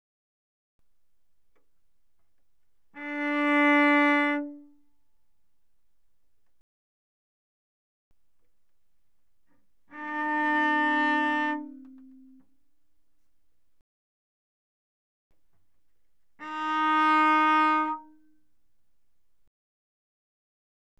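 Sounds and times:
cello bowed arco mezzo forte on the G string: 1.6s - 6.0s, 8.4s - 13.2s, 15.6s - 18.4s.

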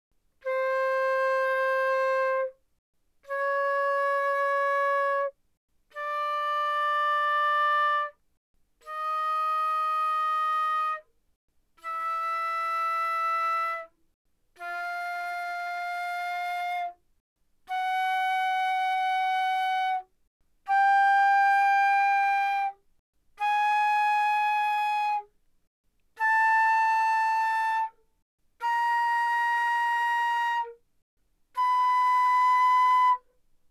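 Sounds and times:
flute playing non vibrato fortissimo notes from C5 to B5: 0.4s - 2.6s, 3.3s - 5.4s, 6.0s - 8.2s, 8.8s - 11.0s, 11.8s - 13.9s, 14.6s - 17.0s, 17.7s - 20.0s, 20.7s - 22.8s, 23.4s - 25.3s, 26.2s - 28.0s, 28.6s - 30.8s, 31.6s - 33.3s.

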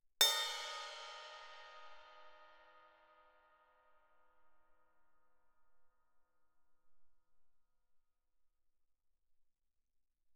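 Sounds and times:
suspended cymbal crash struck with a stick on the bell: 0.2s - 3.2s.

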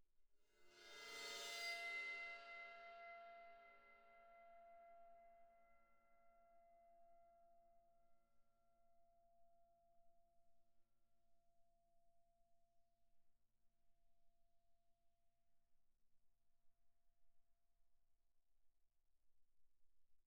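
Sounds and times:
bowed suspended crash cymbal: 0.6s - 3.9s.

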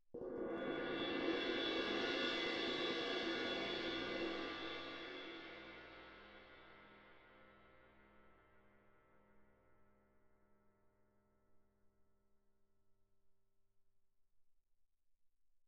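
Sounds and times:
suspended cymbal crash: 0.3s - 7.2s.

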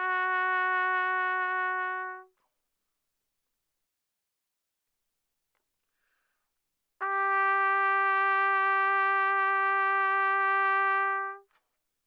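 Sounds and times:
soft trumpet vibrato notes from C4 to B4: 0.0s - 2.3s, 7.0s - 11.4s.

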